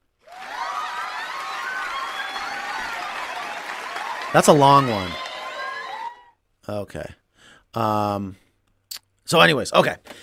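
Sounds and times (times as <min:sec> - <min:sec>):
applause: 0:00.2 - 0:06.3
cheering: 0:00.2 - 0:06.4
speech: 0:04.3 - 0:05.2, 0:06.7 - 0:08.4, 0:09.3 - 0:10.2.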